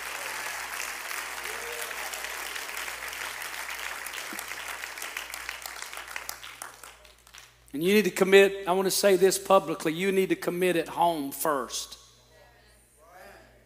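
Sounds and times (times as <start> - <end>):
crowd applauding: 0.0 - 7.7
speech: 7.8 - 12.0.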